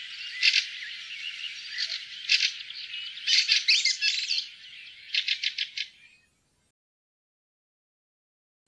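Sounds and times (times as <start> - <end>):
fieldfare calling: 0.0 - 6.2.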